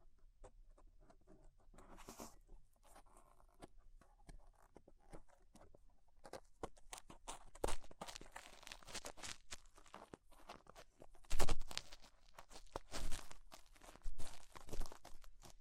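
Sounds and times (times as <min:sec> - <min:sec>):
clicks and scrapes of ear cleaning with rhinestone and clay removal: 0:00.5 - 0:15.5
rustling: 0:01.7 - 0:15.5.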